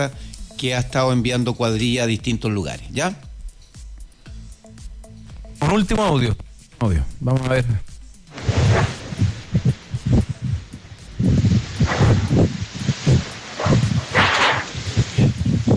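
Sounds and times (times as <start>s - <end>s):
speech: 0.0s - 3.2s, 5.6s - 7.9s
wind gusts buffeting microphone in outdoor ambient recording: 8.3s - 15.7s.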